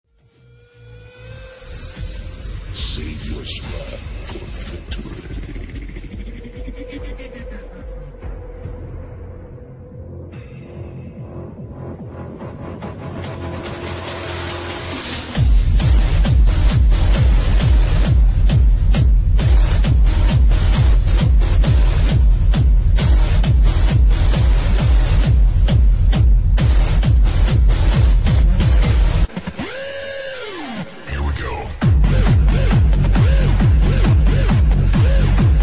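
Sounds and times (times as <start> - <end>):
Malaysian music beat: 1.0 - 35.6.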